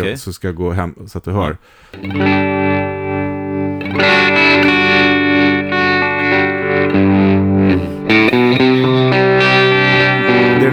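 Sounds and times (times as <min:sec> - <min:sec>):
speech: 0:00.0 - 0:02.8
spacey effects-heavy synth chords with tremolo panning: 0:02.1 - 0:10.7.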